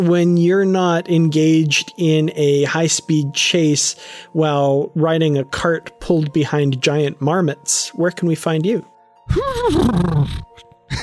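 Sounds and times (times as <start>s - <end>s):
speech: 0.0s - 11.0s
faint breath: 4.0s - 4.3s
person imitating a horse whinny: 9.3s - 10.6s.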